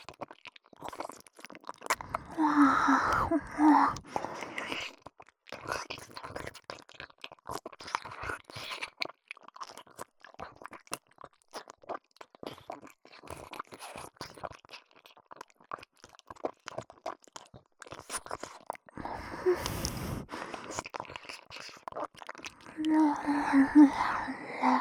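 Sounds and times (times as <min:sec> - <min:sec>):
ASMR ear licking voice: 0:01.9 - 0:04.8, 0:19.0 - 0:24.7.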